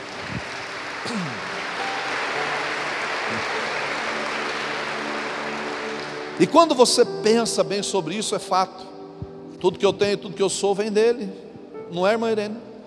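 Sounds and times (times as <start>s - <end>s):
audience applause: 0.0s - 7.1s
speech: 1.0s - 1.5s, 6.4s - 8.9s, 9.6s - 12.7s.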